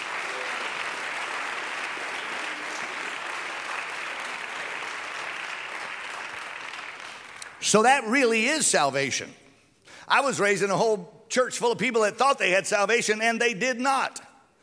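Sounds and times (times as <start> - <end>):
audience clapping hands: 0.0 - 8.0
speech: 7.6 - 9.4, 10.1 - 14.2.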